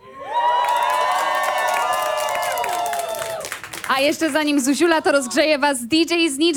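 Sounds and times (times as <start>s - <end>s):
concert crowd cheering and screaming: 0.0s - 3.5s
speech: 3.9s - 6.5s.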